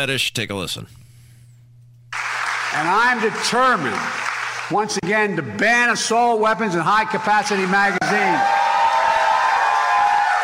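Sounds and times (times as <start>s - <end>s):
speech: 0.0s - 1.0s, 2.8s - 8.6s
audience cheering during a speech: 2.2s - 5.0s, 6.8s - 10.4s.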